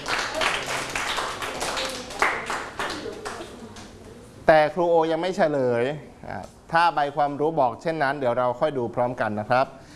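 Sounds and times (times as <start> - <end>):
classroom clapping for a student: 0.0 - 4.0
speech: 4.5 - 9.8.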